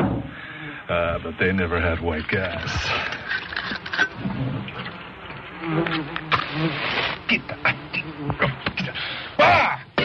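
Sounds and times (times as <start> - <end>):
speech: 0.9 - 3.2, 5.6 - 9.6
wasps buzzing around a nest: 2.6 - 9.4.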